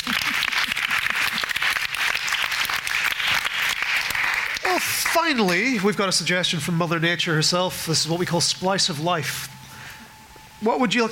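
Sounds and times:
audience applause: 0.0s - 5.4s
speech: 5.2s - 9.5s, 10.6s - 11.1s.

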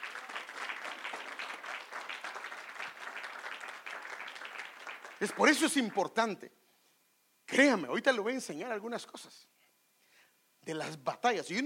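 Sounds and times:
audience applause: 0.0s - 6.0s
speech: 5.2s - 6.6s, 7.5s - 9.5s, 10.6s - 11.6s.

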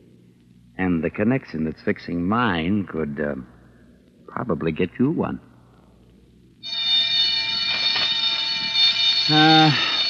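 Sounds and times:
speech: 0.8s - 3.6s, 4.4s - 5.5s, 9.3s - 9.9s
prison yard bell ringing: 6.6s - 10.0s.

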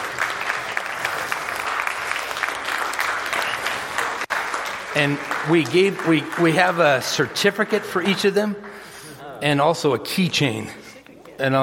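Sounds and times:
audience applause: 0.0s - 9.0s
speech: 5.0s - 10.8s, 11.4s - 11.6s.

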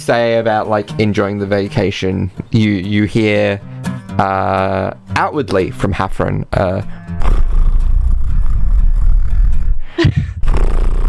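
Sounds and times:
speech: 0.0s - 7.3s
voice imitating purring: 6.6s - 11.0s.

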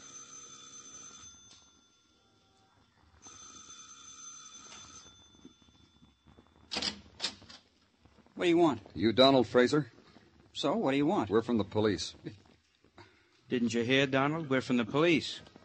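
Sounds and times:
doorbell ringing: 0.0s - 2.6s, 3.2s - 6.6s
speech: 8.4s - 10.0s, 10.6s - 12.4s, 13.5s - 15.5s.

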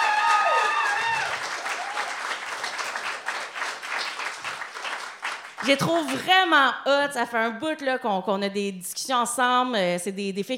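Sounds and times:
audience applause at a live evening event: 0.0s - 6.3s
speech: 5.6s - 10.5s.

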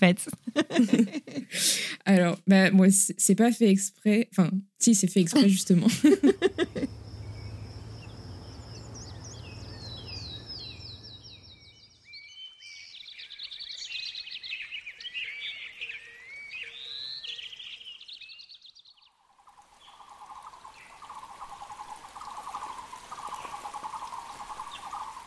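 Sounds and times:
birds chirping: 0.0s - 2.0s, 4.9s - 18.7s, 19.6s - 25.2s
speech: 0.0s - 7.0s
laughter: 0.1s - 1.9s, 5.4s - 6.9s.

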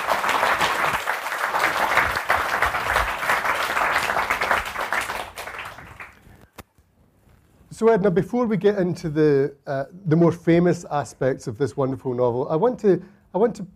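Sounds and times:
audience applause welcoming author Edna O'Brien at a London Review of Books event: 0.0s - 6.3s
speech: 7.8s - 13.7s.

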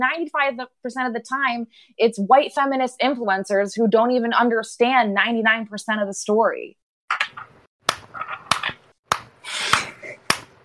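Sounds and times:
speech: 0.0s - 7.6s
slow hand claps: 7.9s - 10.6s.

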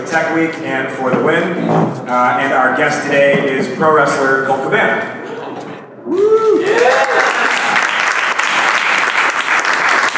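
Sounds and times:
speech: 0.0s - 5.2s
person cheering or whooping: 6.0s - 7.9s
live audience applause: 6.6s - 10.1s.

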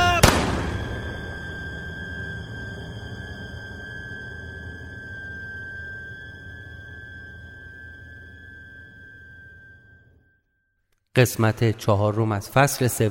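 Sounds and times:
gunshot: 0.0s - 1.2s
high steady ringing tone: 0.0s - 10.8s
speech: 11.2s - 13.0s.

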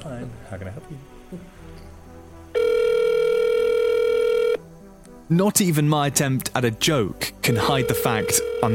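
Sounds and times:
faint telephone line hiss: 0.0s - 3.3s, 3.9s - 7.5s
speech: 0.1s - 2.0s, 5.3s - 8.7s
telephone ringing down the line: 2.6s - 4.6s, 7.4s - 8.7s.

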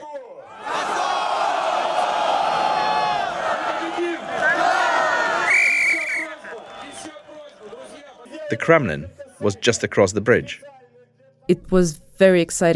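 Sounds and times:
large protest rally crowd roaring and chanting: 0.4s - 8.5s
sharp high whistles: 5.2s - 7.1s
speech: 8.6s - 10.7s, 11.5s - 12.7s.

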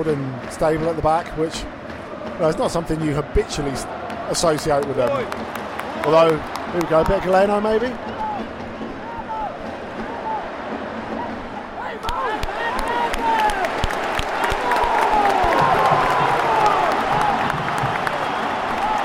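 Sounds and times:
speech: 0.0s - 1.8s, 2.4s - 8.5s
stadium crowd cheering: 1.9s - 19.0s.

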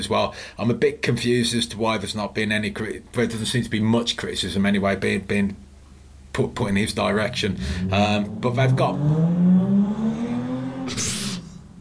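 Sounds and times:
speech: 0.0s - 5.7s, 6.3s - 10.0s, 10.9s - 11.2s
car engine revving outside a house in Spark Hill, Birmingham: 7.3s - 11.7s
brief hissing burst: 10.9s - 11.6s.

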